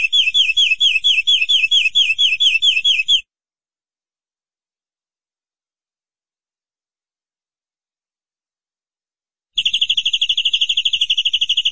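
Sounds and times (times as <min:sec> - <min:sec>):
canary trilling: 0:00.0 - 0:03.2, 0:09.6 - 0:11.7.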